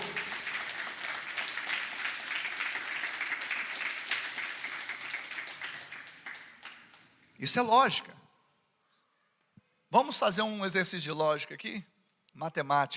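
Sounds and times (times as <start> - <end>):
audience applauding: 0.0 - 7.0
speech: 7.4 - 8.2, 10.0 - 12.9.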